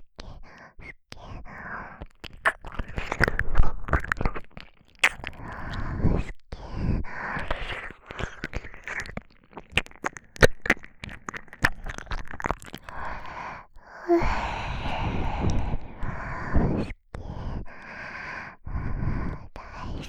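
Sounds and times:
ear licking: 2.0s - 13.7s
intimate whispering: 12.6s - 20.0s.

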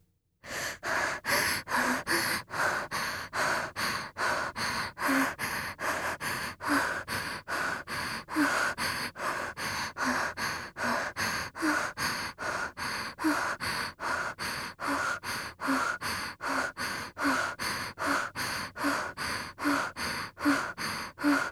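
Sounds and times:
breathing: 0.4s - 21.5s.

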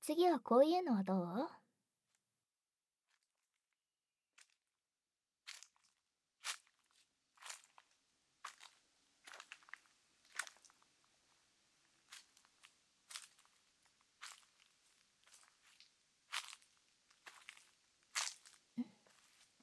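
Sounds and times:
speech: 0.0s - 1.6s
footsteps walking through a forest: 8.5s - 10.7s, 12.1s - 13.6s, 14.2s - 19.6s.

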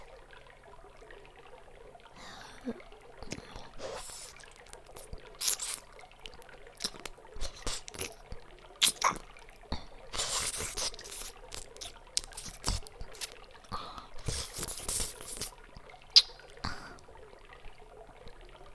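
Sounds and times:
intense ear licking: 2.6s - 17.1s.

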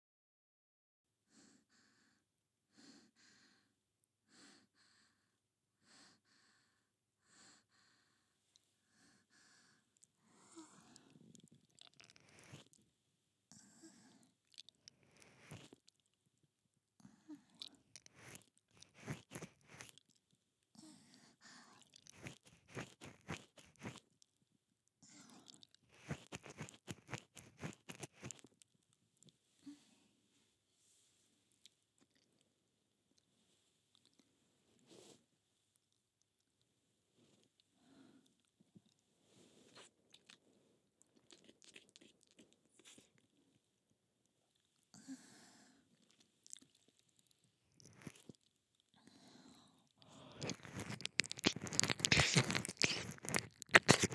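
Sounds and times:
ear licking on the left: 11.4s - 12.8s, 17.6s - 20.1s, 21.8s - 24.1s, 25.4s - 28.6s, 41.1s - 43.1s, 50.0s - 54.1s.

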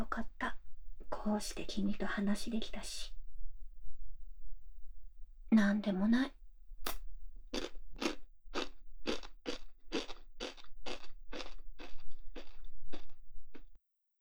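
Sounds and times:
speech: 0.0s - 0.4s, 1.2s - 3.2s, 5.6s - 6.4s
crunching and chewing of salty food: 6.9s - 13.8s.

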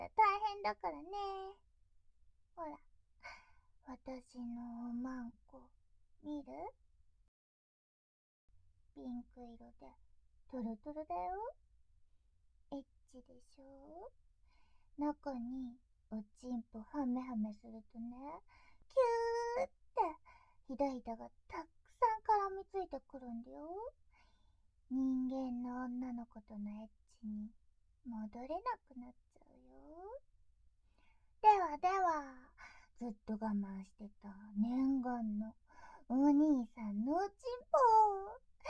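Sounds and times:
voice only: 0.0s - 1.6s, 2.6s - 6.7s, 9.0s - 11.5s, 12.7s - 14.1s, 15.0s - 23.9s, 24.9s - 27.5s, 28.1s - 30.2s, 31.4s - 38.6s.

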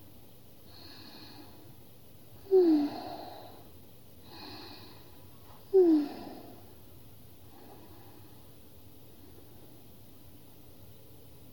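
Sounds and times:
sleep breathing: 0.7s - 1.7s, 2.4s - 6.7s, 7.5s - 8.5s.

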